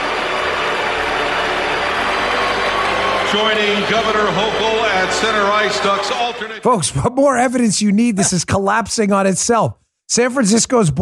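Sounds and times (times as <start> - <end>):
arena crowd booing: 0.0 - 6.6
speech: 3.3 - 11.0.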